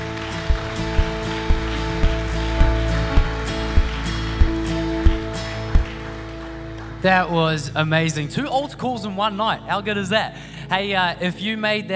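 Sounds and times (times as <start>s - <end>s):
sustained musical drone: 0.0s - 6.9s
crowd applauding: 0.0s - 7.7s
evenly spaced claps or beats: 0.3s - 6.0s
speech: 7.0s - 11.9s.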